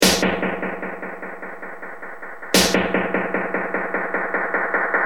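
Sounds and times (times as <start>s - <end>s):
DM100 snare drum: 0.0s - 4.9s.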